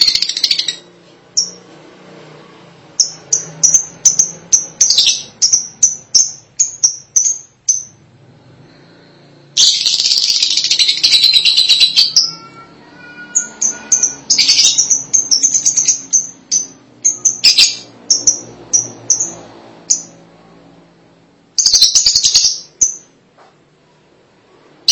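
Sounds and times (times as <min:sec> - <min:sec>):
lovebird chirps: 0:01.4 - 0:01.6, 0:03.0 - 0:08.0, 0:09.6 - 0:12.5, 0:13.3 - 0:20.2, 0:21.6 - 0:23.2.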